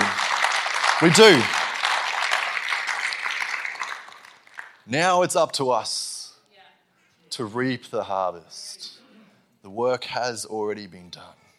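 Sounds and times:
audience round of applause: 0:00.0 - 0:04.8
speech: 0:01.0 - 0:01.6, 0:04.9 - 0:06.1, 0:07.4 - 0:09.0, 0:09.6 - 0:11.4.

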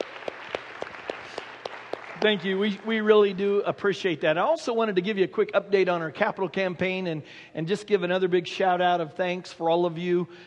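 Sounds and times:
audience applause: 0:00.0 - 0:03.3
speech: 0:02.2 - 0:10.4.

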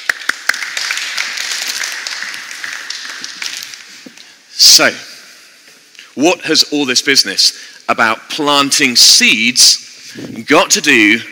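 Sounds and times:
group clapping: 0:00.0 - 0:04.4
speech: 0:04.8 - 0:05.1, 0:06.2 - 0:11.3.

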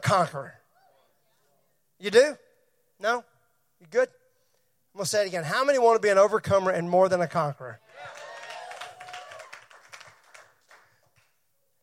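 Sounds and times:
speech: 0:00.1 - 0:00.6, 0:02.0 - 0:02.4, 0:03.0 - 0:04.2, 0:05.0 - 0:08.2
audience applause: 0:07.9 - 0:11.2.

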